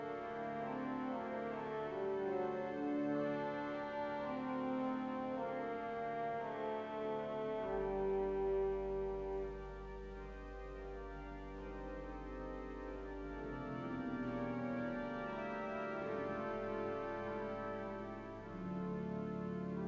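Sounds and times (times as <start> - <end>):
pipe organ with celestes, violes, clarinet and dulzian stops: 0.0 - 19.8.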